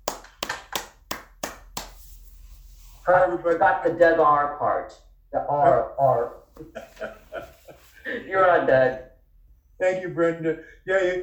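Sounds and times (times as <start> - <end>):
sharp hand claps greeting a main speaker: 0.0 - 2.0
speech: 3.1 - 7.2, 8.1 - 9.1, 9.8 - 11.2
laughter: 6.6 - 8.7.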